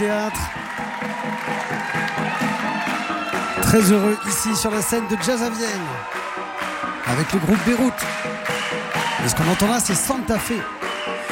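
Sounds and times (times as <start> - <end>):
speech: 0.0 - 1.3, 3.7 - 6.2, 7.1 - 8.3, 9.2 - 10.8
crowd applauding and cheering: 0.0 - 11.2.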